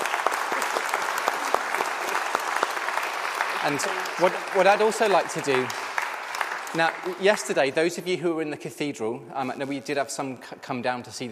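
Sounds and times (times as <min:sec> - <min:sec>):
audience clapping: 0:00.0 - 0:08.1
speech: 0:03.6 - 0:05.8, 0:06.7 - 0:11.3.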